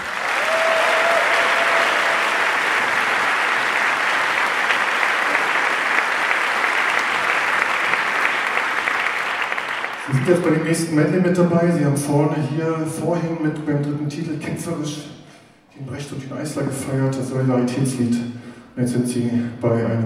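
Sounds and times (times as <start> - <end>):
audience applause: 0.0 - 10.6
speech: 10.3 - 15.2, 15.8 - 20.0.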